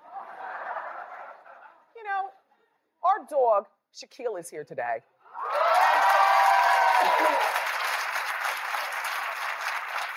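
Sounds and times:
laughter: 0.0 - 1.9
speech: 3.2 - 5.5
audience clapping: 5.4 - 10.1.

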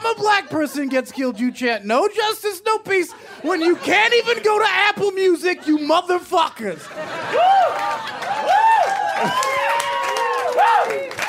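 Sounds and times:
laughter: 0.0 - 9.6
speech: 0.1 - 8.2
audience applause: 7.2 - 11.2.

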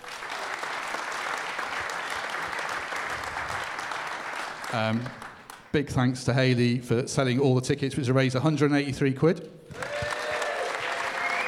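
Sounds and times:
audience applause: 0.0 - 5.7, 9.7 - 11.4
speech: 4.7 - 9.8.

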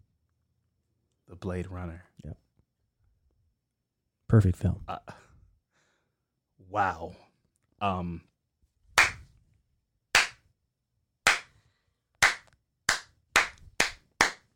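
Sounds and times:
speech: 1.3 - 2.4, 4.3 - 5.3, 6.6 - 8.3
hand clapping: 9.0 - 9.3, 10.1 - 10.4, 11.2 - 11.6, 12.2 - 14.5.

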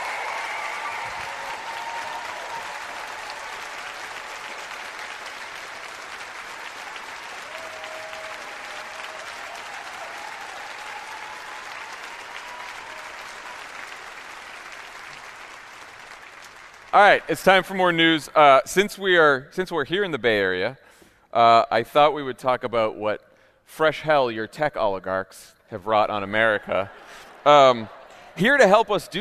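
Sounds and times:
cheers and whistles: 0.0 - 4.8, 7.1 - 14.0
large audience applause: 0.0 - 17.7
speech: 16.9 - 29.1.

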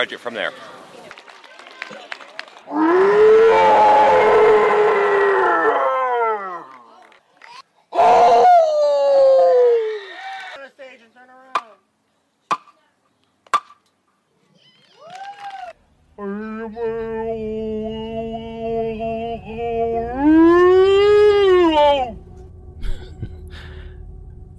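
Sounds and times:
speech: 0.0 - 0.8, 2.7 - 3.0
person imitating a Sasquatch call: 2.7 - 6.8, 7.9 - 10.6, 16.2 - 24.1
short rising whoop: 2.7 - 6.9, 8.0 - 10.6, 15.0 - 15.8, 17.3 - 24.2.

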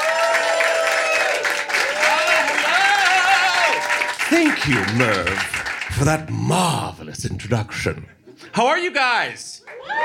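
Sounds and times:
crowd cheering: 0.0 - 6.2, 9.6 - 10.0
audience applause for a comedian: 0.0 - 6.3
speech: 4.3 - 10.0.

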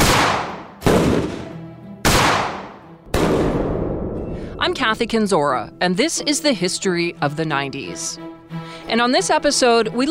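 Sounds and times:
shotgun blasts: 0.0 - 4.2
speech: 4.6 - 10.1.

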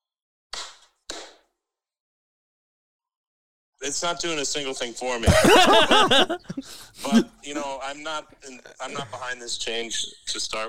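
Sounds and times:
hand claps: 0.5 - 1.4
speech: 3.8 - 10.6
laughter: 5.2 - 9.4.

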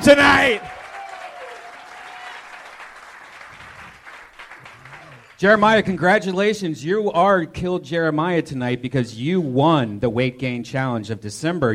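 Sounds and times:
audience applause: 0.0 - 5.8
speech: 0.1 - 0.8, 5.4 - 11.7.

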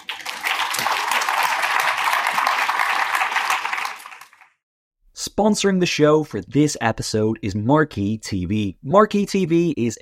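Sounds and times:
applause: 0.0 - 4.6
speech: 5.3 - 9.9.

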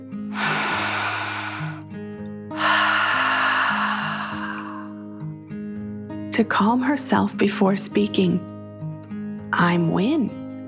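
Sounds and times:
deep breath in and out: 0.3 - 1.9, 2.5 - 5.2
speech: 6.4 - 8.6, 9.6 - 10.4.

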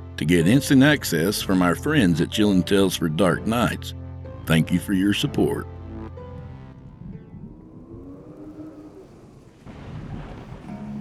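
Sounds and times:
speech: 0.2 - 5.8
rain: 7.7 - 11.0.

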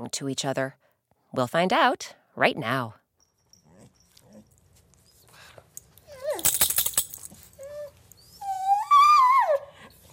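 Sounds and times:
speech: 0.0 - 3.0
dog Truffles whining: 3.2 - 10.1.

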